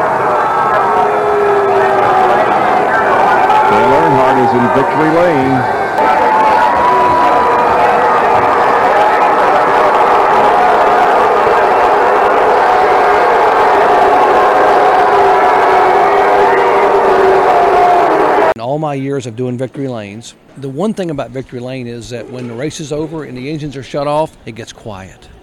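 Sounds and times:
stadium crowd roaring at race victory: 0:00.0 - 0:18.6
speech: 0:04.5 - 0:05.8, 0:18.9 - 0:25.3.

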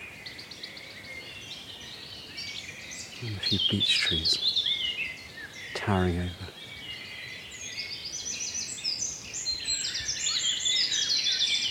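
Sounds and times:
blackbird, wren and blackcap singing along a wooded lane in the Brecon Beacons: 0:00.0 - 0:11.6
speech: 0:03.2 - 0:04.5, 0:05.8 - 0:06.6.

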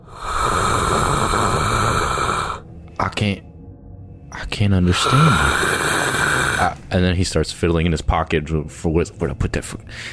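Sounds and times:
throaty growl: 0:00.0 - 0:02.6, 0:04.8 - 0:06.8
voice imitating a crocodile hiss: 0:00.0 - 0:02.6, 0:04.9 - 0:06.8
speech: 0:03.2 - 0:03.5, 0:04.6 - 0:05.9, 0:06.6 - 0:10.1.

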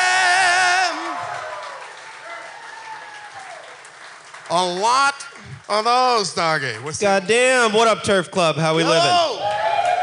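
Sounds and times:
live audience cheering: 0:00.0 - 0:06.1, 0:08.8 - 0:10.0
live audience applause: 0:00.0 - 0:07.3, 0:09.4 - 0:10.0
speech: 0:04.5 - 0:09.5.

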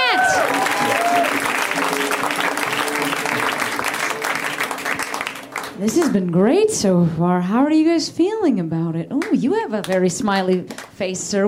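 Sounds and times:
whoops and cheers: 0:00.0 - 0:02.2
audience applause: 0:00.0 - 0:06.2
speech: 0:05.8 - 0:11.4.

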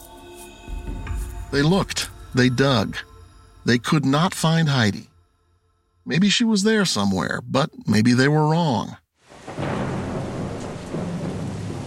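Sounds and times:
speech: 0:01.5 - 0:05.1, 0:06.1 - 0:09.0
heavy rain: 0:09.2 - 0:11.8.

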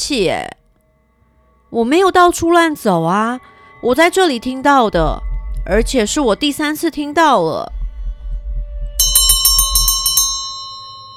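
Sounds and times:
speech: 0:00.0 - 0:00.6, 0:01.7 - 0:07.8
low steady rumble: 0:04.9 - 0:06.6, 0:07.7 - 0:10.2
hand bell ringing: 0:09.0 - 0:11.1.

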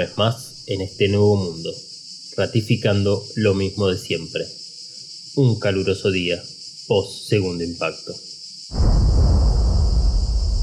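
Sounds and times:
speech: 0:00.0 - 0:04.6, 0:05.4 - 0:09.1
explosion in the sea: 0:08.7 - 0:10.6.

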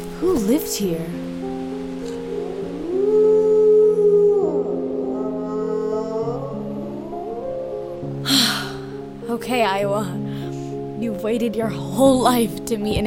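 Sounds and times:
speech: 0:00.2 - 0:01.6, 0:09.5 - 0:10.2, 0:11.0 - 0:13.0
dog howling: 0:02.3 - 0:08.2.

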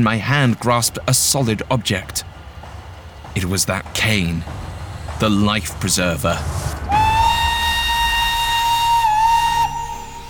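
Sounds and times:
speech: 0:00.0 - 0:02.3, 0:03.4 - 0:04.6, 0:05.2 - 0:06.8
train rumbling: 0:00.0 - 0:10.2
steam train whistle: 0:06.5 - 0:10.2.

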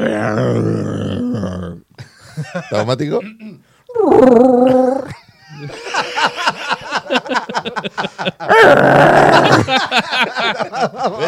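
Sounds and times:
person imitating a Wookiee roar: 0:00.0 - 0:01.8, 0:03.9 - 0:05.2, 0:08.5 - 0:09.6
speech: 0:00.2 - 0:01.6, 0:02.6 - 0:06.4, 0:07.3 - 0:11.2
laughter: 0:02.0 - 0:03.4, 0:05.2 - 0:08.5, 0:09.1 - 0:11.2.

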